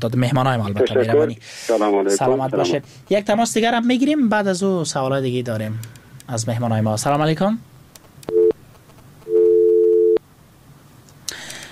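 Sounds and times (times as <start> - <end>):
speech: 0.0 - 7.7
telephone busy signal after a dropped call: 8.3 - 8.6, 9.3 - 10.2.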